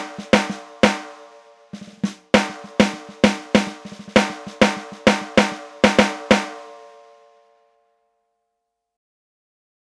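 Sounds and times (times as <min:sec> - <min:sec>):
snare drums: 0:00.0 - 0:06.8.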